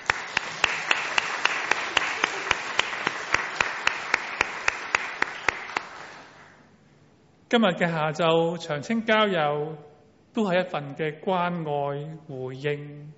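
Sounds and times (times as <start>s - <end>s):
audience clapping in unison: 0.0s - 6.6s
speech: 7.5s - 13.1s.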